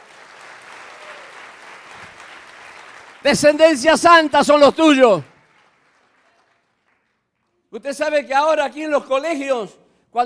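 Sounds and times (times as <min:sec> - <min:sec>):
audience applause: 0:00.0 - 0:07.2
speech: 0:03.2 - 0:05.3, 0:07.8 - 0:10.2.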